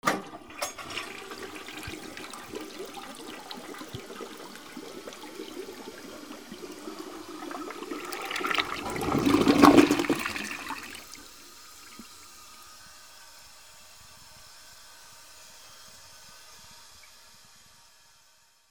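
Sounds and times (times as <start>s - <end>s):
bathroom ambience: 0.0s - 12.8s.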